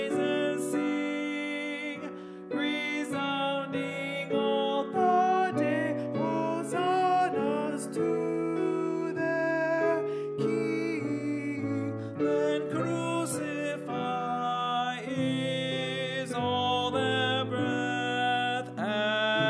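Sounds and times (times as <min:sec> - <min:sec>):
alto voice singing: 0:00.0 - 0:19.4.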